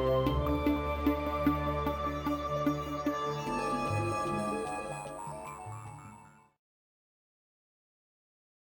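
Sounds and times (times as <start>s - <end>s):
music: 0.0s - 6.6s.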